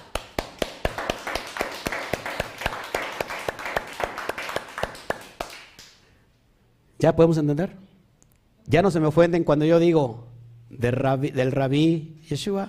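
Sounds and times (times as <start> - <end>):
audience clapping: 0.0 - 6.1
speech: 7.0 - 7.8, 8.7 - 12.6.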